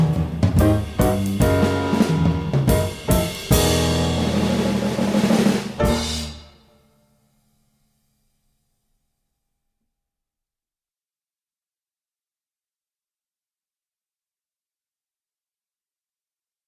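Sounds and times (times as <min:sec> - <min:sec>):
nocturne in E flat major: 0:00.0 - 0:06.6.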